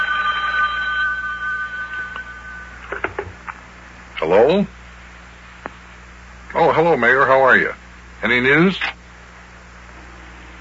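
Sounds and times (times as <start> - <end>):
telephone ringing: 0.0 - 3.5
speech: 4.2 - 4.8, 6.8 - 9.0.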